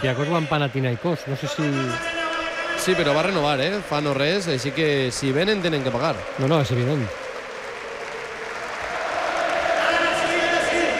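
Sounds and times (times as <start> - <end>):
speech: 0.0 - 2.2, 2.8 - 7.2
crowd cheering: 0.0 - 10.9
crowd clapping: 1.4 - 10.9.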